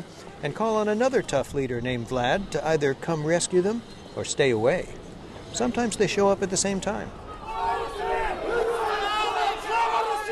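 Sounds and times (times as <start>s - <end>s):
speech: 0.4s - 7.2s
demonstrators shouting and chanting in unison in a square: 7.1s - 10.3s.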